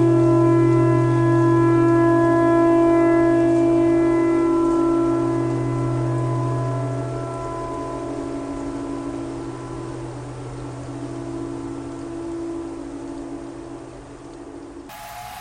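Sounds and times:
tornado siren: 0.0s - 9.9s, 14.9s - 15.3s.

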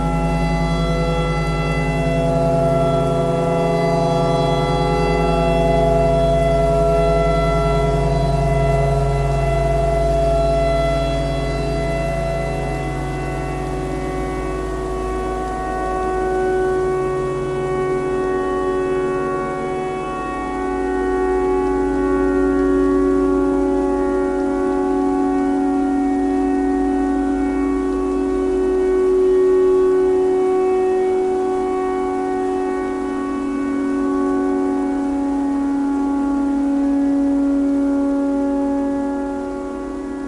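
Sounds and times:
clarinet playing pentatonic: 0.0s - 40.2s
tornado siren: 0.0s - 40.2s.

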